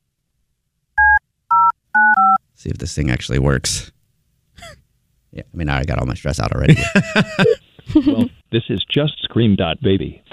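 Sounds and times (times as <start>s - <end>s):
touch-tone keypad dialing beeps: 1.0s - 2.4s
speech: 2.6s - 4.0s, 5.4s - 10.2s
laughter: 6.7s - 8.3s.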